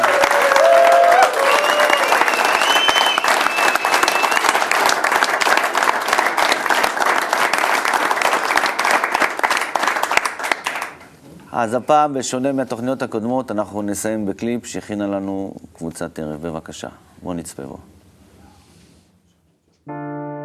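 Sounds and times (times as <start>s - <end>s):
audience applause: 0.0s - 11.0s
speech: 11.6s - 18.0s.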